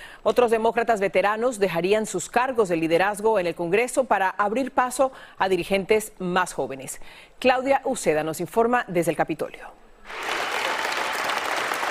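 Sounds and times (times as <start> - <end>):
speech: 0.2 - 10.4
crowd applause: 10.1 - 11.8.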